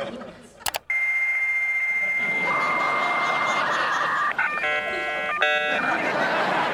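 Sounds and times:
laughter: 0:00.0 - 0:00.6, 0:02.2 - 0:06.7
dial-up modem connecting to the internet: 0:00.7 - 0:02.3, 0:04.2 - 0:05.9.

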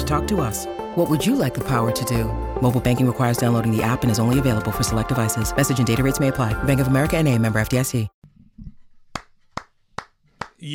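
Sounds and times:
speech: 0:00.1 - 0:08.2
hand clapping: 0:09.1 - 0:10.6.

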